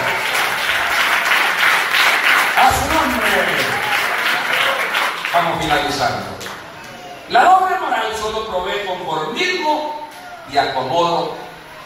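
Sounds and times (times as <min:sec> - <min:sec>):
church congregation applause during a sermon: 0:00.0 - 0:07.2
speech: 0:05.6 - 0:06.4, 0:07.3 - 0:11.4.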